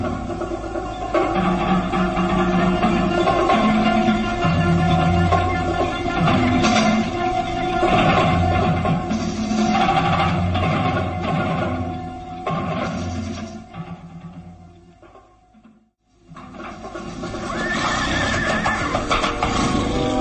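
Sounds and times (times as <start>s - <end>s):
clatter of horse hooves as a rider mounts: 0.0s - 20.1s
horse whinnying loudly in long wavering bursts: 17.3s - 20.1s.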